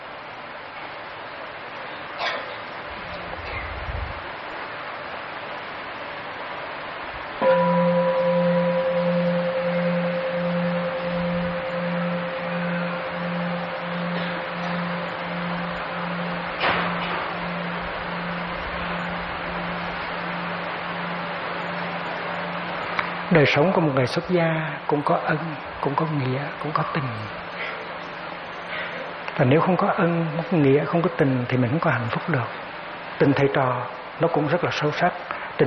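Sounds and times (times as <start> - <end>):
temple bell ringing: 7.4 - 33.4
speech: 23.3 - 27.4, 29.4 - 32.6, 33.2 - 35.6.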